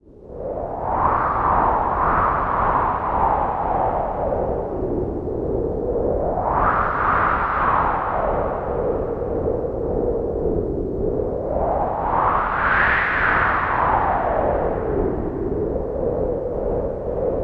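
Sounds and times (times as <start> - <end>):
wind: 0.0 - 17.4.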